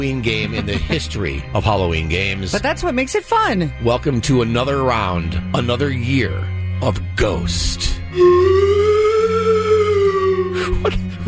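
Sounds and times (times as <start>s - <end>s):
laughter: 0.0s - 1.4s, 10.5s - 11.2s
speech: 0.0s - 8.7s
slide whistle: 8.1s - 10.8s
steady low hum: 8.1s - 10.9s.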